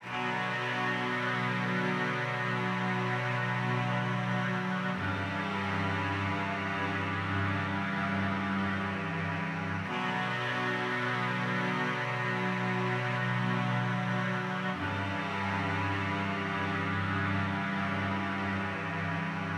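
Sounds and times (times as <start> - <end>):
strings: 0.0 - 19.5.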